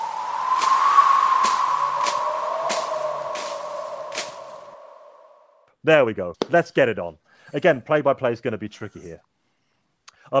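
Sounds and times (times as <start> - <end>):
tumbleweed sound effect with whistling wind tone: 0.0 - 5.5
speech: 5.8 - 9.3.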